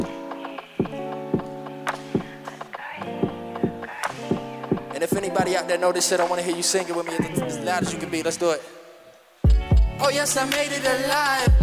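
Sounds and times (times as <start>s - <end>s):
rhythmic hand clapping along: 0.0s - 8.1s
speech: 5.0s - 8.8s, 10.0s - 11.6s.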